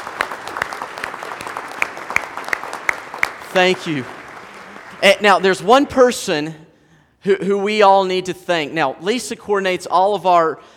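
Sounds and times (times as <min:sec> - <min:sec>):
big round of audience applause: 0:00.0 - 0:05.4
speech: 0:03.6 - 0:04.2, 0:05.0 - 0:10.7.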